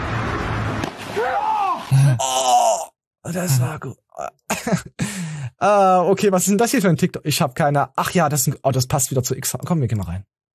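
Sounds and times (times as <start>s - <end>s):
body slapping onto water: 0.8s - 2.1s
speech: 1.2s - 10.4s.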